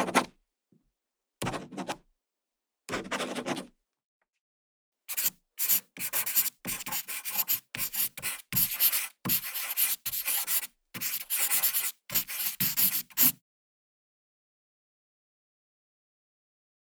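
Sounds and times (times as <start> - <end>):
pen writing: 2.9 - 3.7, 5.1 - 13.4.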